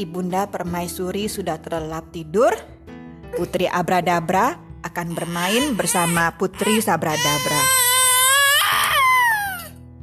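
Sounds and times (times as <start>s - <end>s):
speech: 0.0s - 7.8s
baby screaming and crying: 5.0s - 9.8s.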